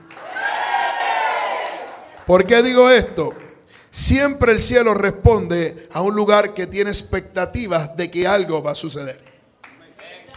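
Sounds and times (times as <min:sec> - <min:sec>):
church audience roaring and cheering: 0:00.1 - 0:02.1
speech: 0:02.3 - 0:09.3.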